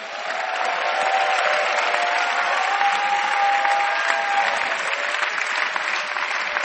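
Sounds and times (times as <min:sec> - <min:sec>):
audience clapping hands: 0:00.0 - 0:06.6.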